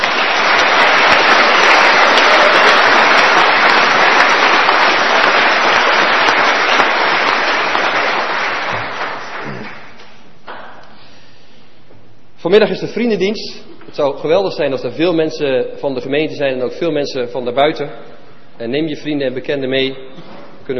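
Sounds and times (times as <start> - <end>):
audience applause: 0.0 - 10.1
speech: 12.5 - 20.7.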